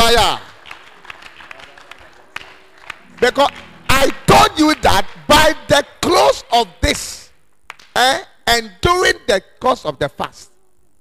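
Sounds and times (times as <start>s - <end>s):
audience clapping: 0.0s - 5.9s, 7.7s - 8.0s
speech: 3.2s - 7.2s, 8.0s - 10.5s.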